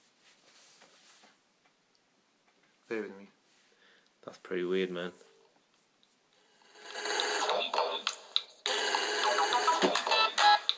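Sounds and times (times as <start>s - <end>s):
speech: 2.9s - 3.3s, 4.2s - 5.2s
mobile phone ringtone playing: 6.6s - 10.7s.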